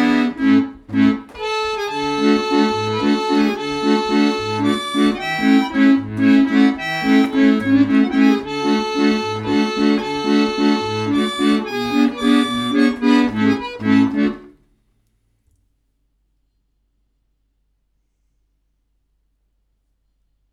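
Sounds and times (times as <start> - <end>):
organette playing: 0.0 - 14.6.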